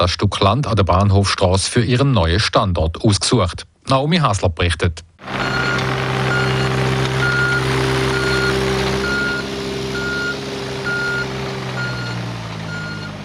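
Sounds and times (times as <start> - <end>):
speech: 0.0 - 5.7
heavy excavator engine rumbling: 5.2 - 13.2
high reversing alarm beeping: 5.3 - 13.2.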